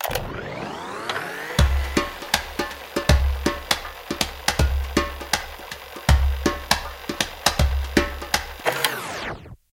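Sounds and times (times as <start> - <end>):
busker playing djembe: 1.6 - 8.6.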